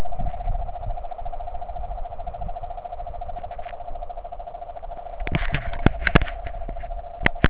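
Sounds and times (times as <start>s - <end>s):
jungle ambience: 0.0s - 7.4s.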